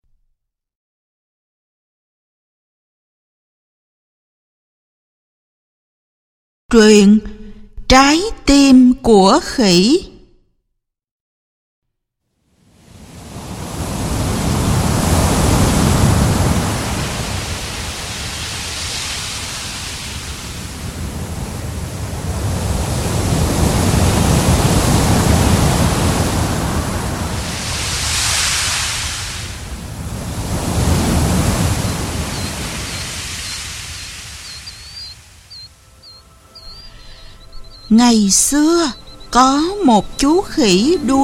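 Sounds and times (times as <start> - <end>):
speech: 6.7 - 7.3, 7.9 - 10.1, 37.9 - 41.2
ocean waves murmuring on a seashore: 12.6 - 41.2.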